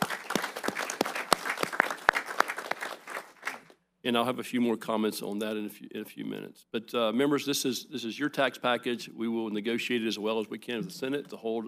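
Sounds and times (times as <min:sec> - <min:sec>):
audience applause: 0:00.0 - 0:03.7
speech: 0:04.0 - 0:11.6.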